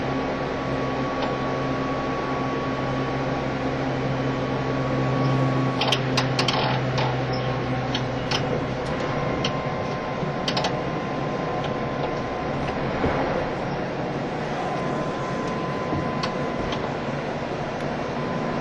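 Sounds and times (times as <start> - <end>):
JR East E351 series tilting train interior rumble running as a Super Azusa: 0.0 - 18.5
JR East E351 series train mid-pitched whine: 0.0 - 18.5
track clacks and rattles: 5.2 - 17.1.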